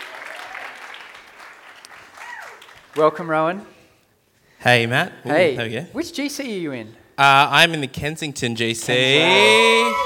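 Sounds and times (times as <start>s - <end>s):
church service audience applauding a guest invited on stage: 0.0s - 3.2s
speech: 3.0s - 3.8s, 4.6s - 10.0s.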